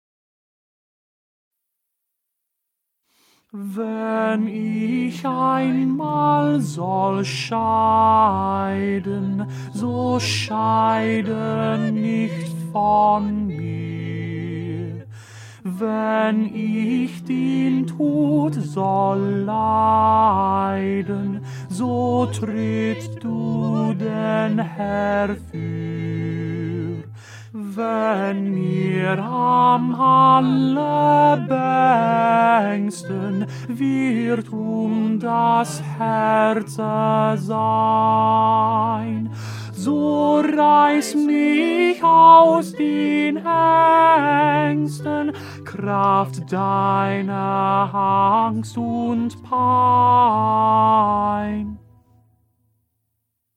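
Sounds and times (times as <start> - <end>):
tenor singing: 3.5 - 51.8.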